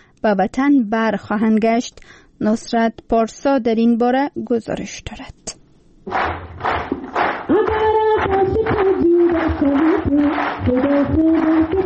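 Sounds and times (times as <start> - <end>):
speech: 0.2 - 5.4, 6.1 - 6.9
clapping applause: 6.1 - 11.8.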